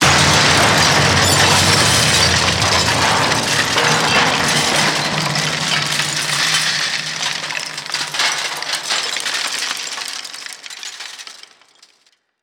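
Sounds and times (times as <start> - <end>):
crash: 0.0 - 11.8.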